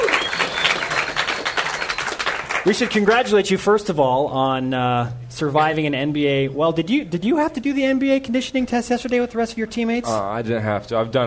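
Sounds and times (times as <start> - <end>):
studio audience applauding to welcome a BYU basketball guard: 0.0 - 3.3
speech: 2.6 - 11.2.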